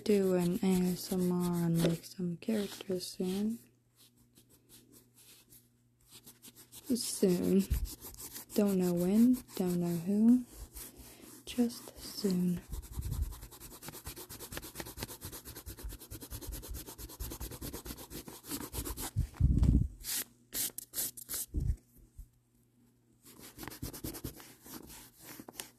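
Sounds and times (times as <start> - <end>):
pencil drawing on paper: 0.0 - 3.6, 6.1 - 19.1, 23.4 - 25.4
speech: 0.0 - 3.7, 6.9 - 10.6, 11.6 - 12.8.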